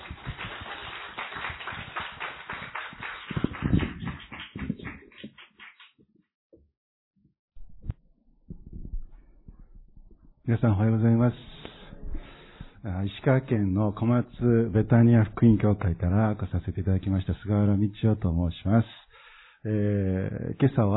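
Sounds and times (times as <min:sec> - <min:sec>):
audience applauding to welcome the speaker: 0:00.0 - 0:06.0
speech: 0:10.5 - 0:11.6, 0:12.8 - 0:19.0, 0:19.6 - 0:20.9.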